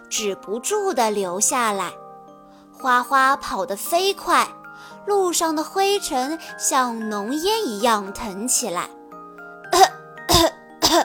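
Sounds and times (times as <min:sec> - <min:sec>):
speech: 0:00.1 - 0:02.0, 0:02.8 - 0:09.0
people coughing from dust: 0:09.8 - 0:11.0.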